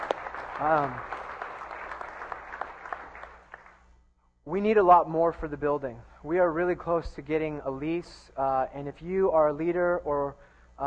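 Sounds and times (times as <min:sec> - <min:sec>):
audience applause: 0:00.0 - 0:03.8
speech: 0:00.6 - 0:01.2, 0:04.5 - 0:10.8.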